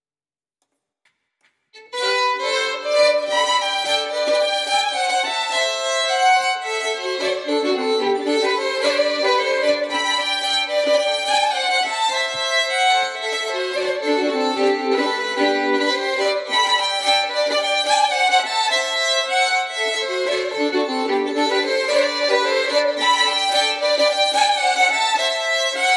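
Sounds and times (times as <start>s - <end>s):
bagpipe playing a schottische: 1.8s - 25.9s.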